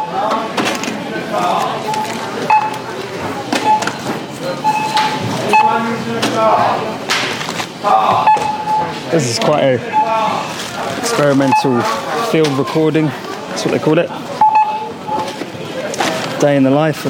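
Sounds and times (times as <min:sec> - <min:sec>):
short high electronic beeps from a self-checkout scanner: 0:00.0 - 0:00.4, 0:01.0 - 0:06.2, 0:08.2 - 0:13.0, 0:14.4 - 0:15.9
indistinct voices: 0:00.0 - 0:17.0
speech: 0:07.8 - 0:08.5, 0:09.1 - 0:14.3, 0:16.4 - 0:17.0.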